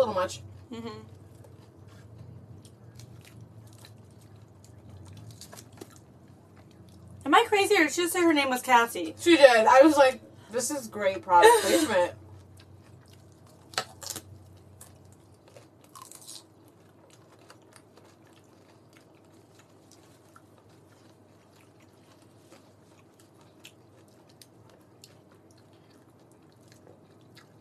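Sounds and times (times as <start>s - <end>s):
speech: 0.1s - 1.2s, 7.2s - 12.2s
person chewing a piece of chicken: 1.1s - 7.2s, 12.2s - 27.5s.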